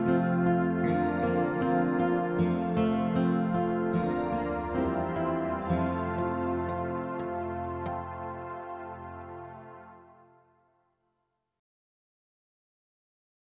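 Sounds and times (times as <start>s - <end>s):
instrumental music: 0.0s - 10.6s.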